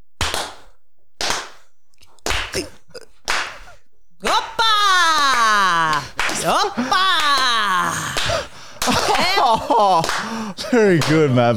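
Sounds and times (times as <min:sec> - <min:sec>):
hands clapping in rhythm: 0:00.2 - 0:11.5
speech: 0:02.5 - 0:03.0, 0:09.8 - 0:11.5
laughter: 0:04.2 - 0:11.5.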